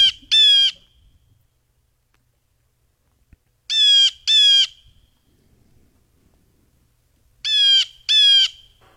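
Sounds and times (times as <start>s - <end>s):
blue jay calls: 0.0s - 1.2s, 3.7s - 5.2s, 7.4s - 8.9s.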